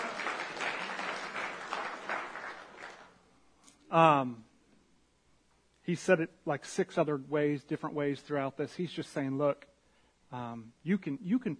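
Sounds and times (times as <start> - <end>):
small audience clapping: 0.0 - 3.2
speech: 3.9 - 4.5, 5.9 - 9.7, 10.3 - 11.5.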